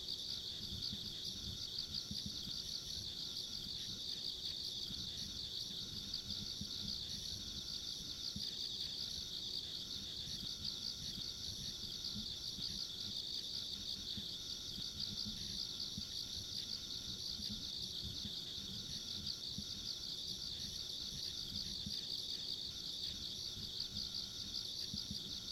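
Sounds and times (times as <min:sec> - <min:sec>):
insects trilling: 0:00.1 - 0:25.5.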